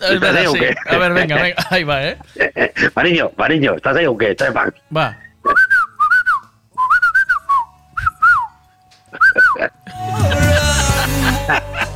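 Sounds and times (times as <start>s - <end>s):
laughter: 0.0s - 3.0s, 9.1s - 11.9s
speech: 0.0s - 5.6s, 9.6s - 10.4s
person whistling to call a dog: 5.2s - 9.7s.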